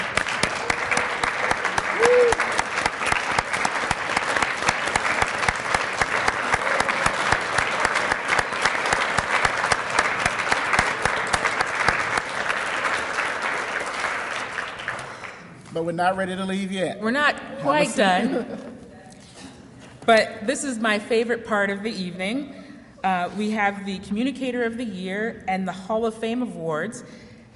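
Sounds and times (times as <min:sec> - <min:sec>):
audience standing applause: 0:00.0 - 0:15.5
speech: 0:15.9 - 0:18.7, 0:20.1 - 0:27.3.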